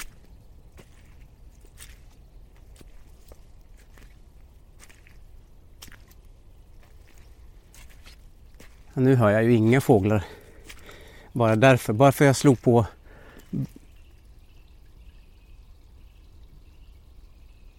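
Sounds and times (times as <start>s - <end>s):
footsteps squelching through wet mud: 0.0s - 14.2s
speech: 9.0s - 10.4s, 11.4s - 13.7s.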